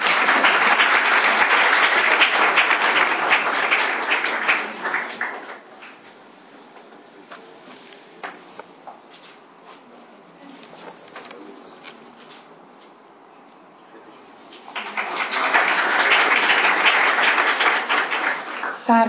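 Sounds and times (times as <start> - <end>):
audience applause: 0.0 - 6.1, 14.6 - 18.9.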